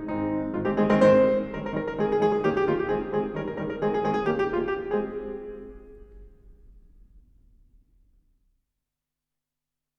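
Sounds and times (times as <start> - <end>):
galop played on piano: 0.0 - 7.4.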